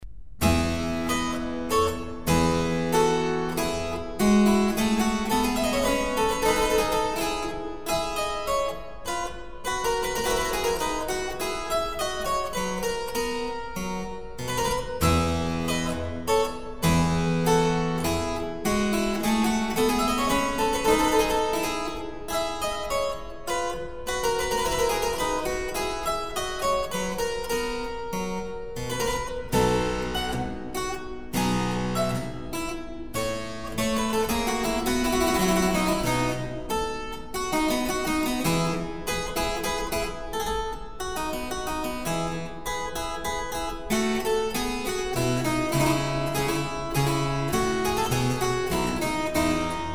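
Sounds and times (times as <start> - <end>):
minuet in F: 0.4 - 49.9.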